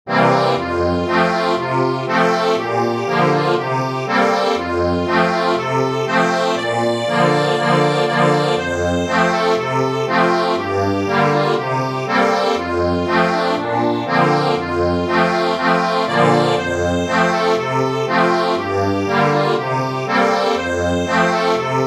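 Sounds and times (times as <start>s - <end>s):
accordion: 0.1s - 21.8s.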